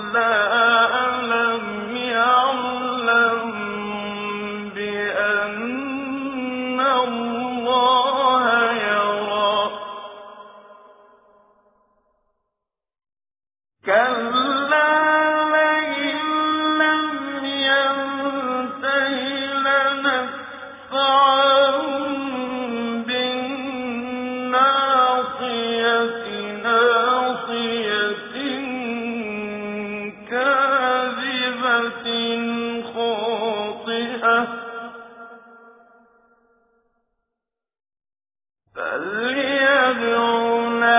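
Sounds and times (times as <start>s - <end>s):
tajwid Quran recitation: 0.0s - 11.2s, 13.8s - 35.8s, 38.8s - 40.9s.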